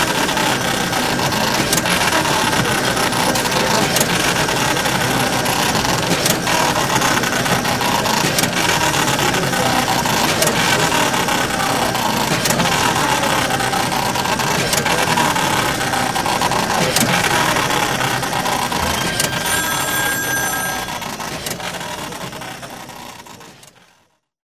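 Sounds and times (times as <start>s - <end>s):
office ambience: 0.0s - 23.9s.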